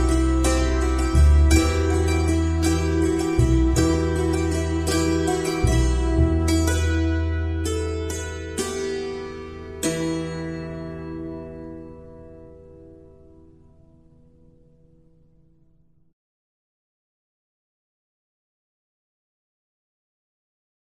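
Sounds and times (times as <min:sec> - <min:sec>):
hammered dulcimer melody: 0:00.0 - 0:14.3.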